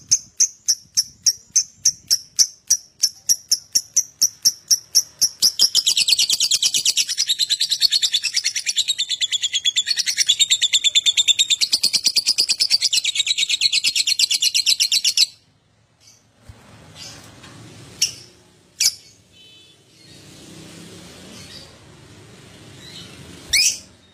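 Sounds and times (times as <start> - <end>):
lovebird song of harsh rapid chatter: 0.0 - 15.4.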